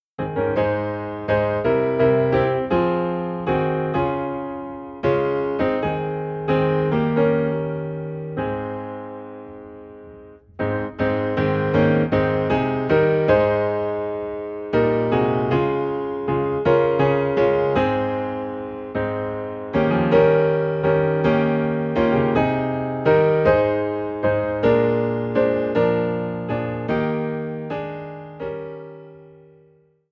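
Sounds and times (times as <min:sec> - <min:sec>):
piano: 0:00.0 - 0:30.1.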